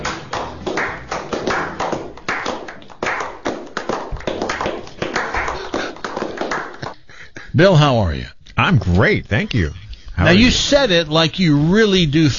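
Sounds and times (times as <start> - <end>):
crowd applause: 0.0 - 6.9
speech: 7.6 - 12.3.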